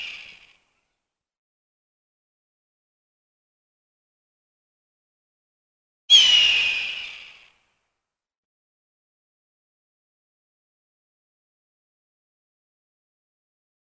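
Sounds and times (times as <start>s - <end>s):
hawk giving harsh hoarse screams: 6.1s - 7.3s.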